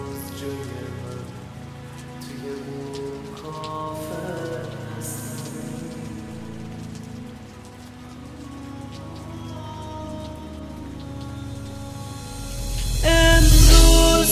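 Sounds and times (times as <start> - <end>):
steady rain falling on a surface: 0.0 - 14.3
low sustained tones: 11.3 - 14.3.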